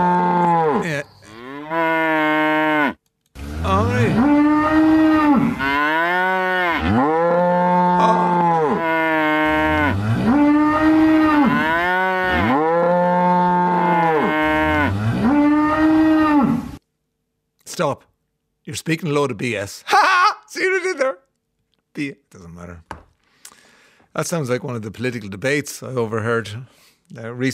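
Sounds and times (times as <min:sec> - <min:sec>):
cows mooing to each other: 0:00.0 - 0:16.8
speech: 0:18.8 - 0:20.2, 0:22.0 - 0:22.8, 0:24.2 - 0:27.5.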